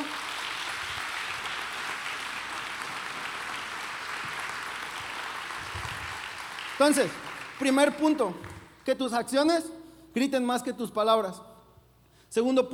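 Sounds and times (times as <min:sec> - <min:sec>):
audience applause: 0:00.0 - 0:08.6
speech: 0:06.8 - 0:11.5, 0:12.3 - 0:12.7.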